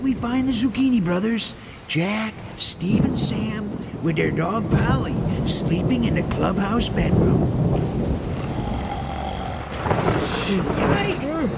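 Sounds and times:
speech: 0.0 - 8.0, 10.5 - 11.5
rumble of thunder in a thunderstorm: 2.5 - 11.5.

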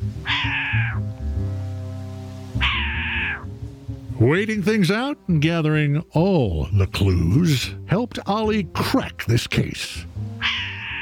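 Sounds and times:
short-eared owl cat-like call: 0.2 - 1.1, 2.6 - 3.5, 10.4 - 11.0
speech: 4.2 - 10.2.

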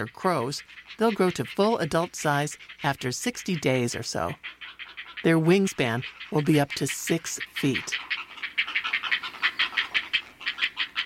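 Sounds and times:
speech: 0.0 - 8.1
heron fledglings calling in nest: 0.0 - 11.0.

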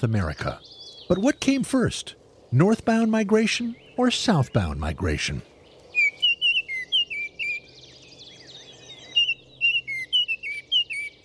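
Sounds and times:
speech: 0.0 - 5.5
soft chirps from other birds: 0.0 - 11.2
Baltimore oriole singing whistled notes: 6.0 - 11.2.

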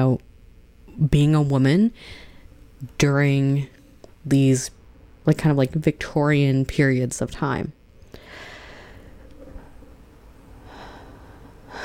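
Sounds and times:
speech: 0.0 - 0.3, 1.0 - 2.2, 2.8 - 7.8
deep breath taken before speaking: 2.0 - 2.6, 8.0 - 9.8, 10.5 - 11.8.

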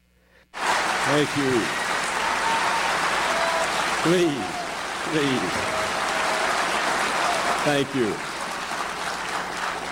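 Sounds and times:
audience applause at the 2007 National Conference for Media Reform welcoming Bill Moyers: 0.6 - 9.9
speech: 1.1 - 1.8, 4.0 - 5.8, 7.6 - 8.3.

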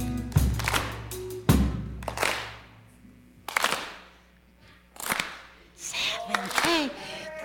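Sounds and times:
audience doing a rhythmic soul clap: 0.0 - 2.8, 3.4 - 4.3, 4.9 - 7.0.

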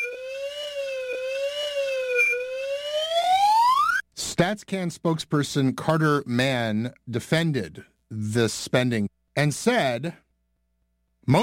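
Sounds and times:
slide whistle: 0.0 - 4.0
speech: 4.4 - 10.2, 11.2 - 11.4.

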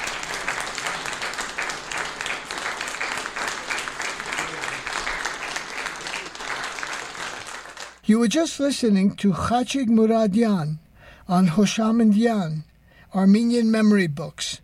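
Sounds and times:
audience applause: 0.0 - 8.0
speech: 8.1 - 14.6.

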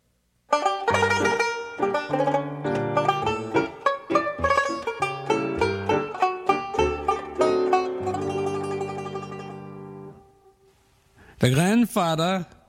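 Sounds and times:
banjo playing: 0.5 - 10.5
speech: 11.4 - 12.6.

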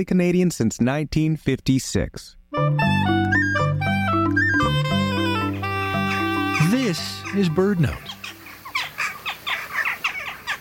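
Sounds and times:
speech: 0.0 - 3.1, 6.9 - 8.1
jackdaw calls: 2.8 - 10.5.

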